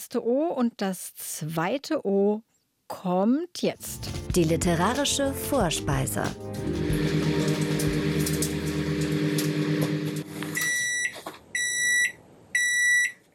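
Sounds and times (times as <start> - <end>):
speech: 0.0 - 7.0
microwave oven beeping: 6.6 - 13.2.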